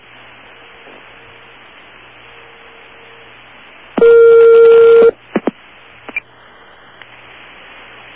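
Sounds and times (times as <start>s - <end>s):
telephone ringing: 4.0s - 5.1s.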